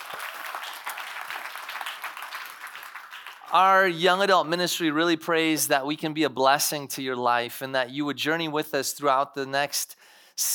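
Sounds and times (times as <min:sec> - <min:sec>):
audience applause: 0:00.0 - 0:04.0
speech: 0:03.5 - 0:10.5.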